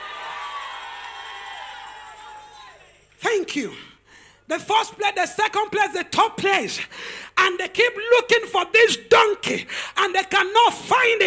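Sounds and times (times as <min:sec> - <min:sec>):
audience shouting hallelujah: 0:00.0 - 0:02.9
speech: 0:03.4 - 0:03.9, 0:04.5 - 0:11.2.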